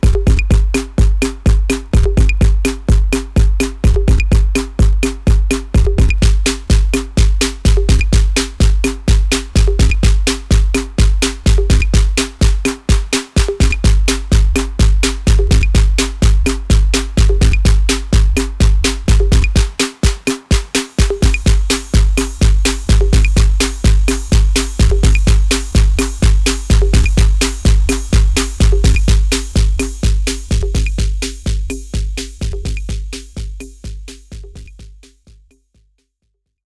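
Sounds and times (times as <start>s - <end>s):
drums: 0.0s - 35.6s.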